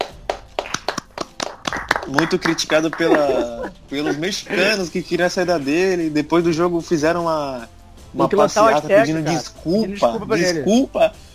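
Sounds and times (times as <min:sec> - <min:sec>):
sharp hand claps: 0:00.0 - 0:03.8
laughter: 0:02.1 - 0:05.0
speech: 0:02.1 - 0:11.2.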